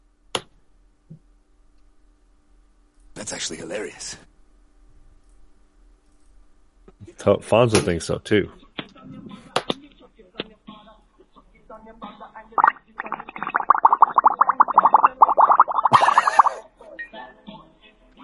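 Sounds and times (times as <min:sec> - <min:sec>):
speech: 0:03.2 - 0:04.3, 0:07.0 - 0:08.6
bong hit bubbling: 0:12.6 - 0:16.6.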